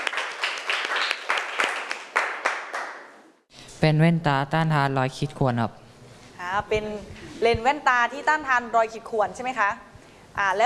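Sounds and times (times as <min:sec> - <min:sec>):
classroom people clapping: 0:00.0 - 0:03.2
speech: 0:03.8 - 0:05.8, 0:06.5 - 0:10.6.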